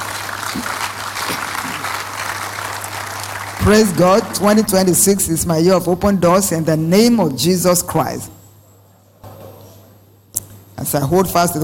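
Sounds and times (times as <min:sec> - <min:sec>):
audience clapping: 0:00.0 - 0:05.4
speech: 0:00.5 - 0:01.4, 0:03.7 - 0:08.4, 0:10.9 - 0:11.6
low hum: 0:03.6 - 0:08.4.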